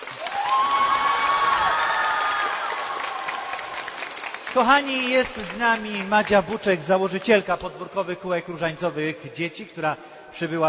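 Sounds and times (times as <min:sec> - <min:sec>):
audience applause: 0:00.0 - 0:06.6
speech: 0:04.6 - 0:10.6.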